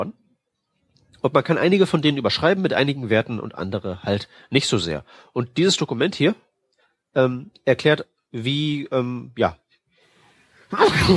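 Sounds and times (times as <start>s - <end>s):
speech: 1.2s - 6.5s, 7.1s - 9.6s, 10.7s - 11.1s
person sneezing: 10.7s - 11.1s.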